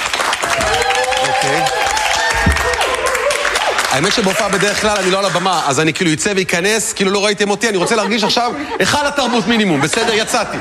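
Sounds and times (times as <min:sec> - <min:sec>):
audience applause: 0:00.0 - 0:05.8
voices calling out and cheering: 0:00.4 - 0:05.4
speech: 0:04.0 - 0:10.6
laughter: 0:07.4 - 0:10.6.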